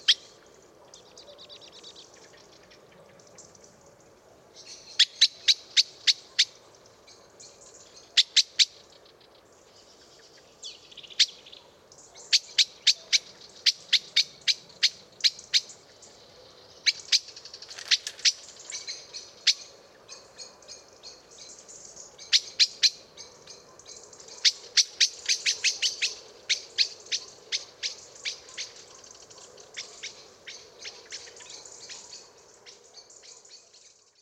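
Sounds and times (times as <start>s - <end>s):
common blackbird chink calls: 0.0s - 34.1s.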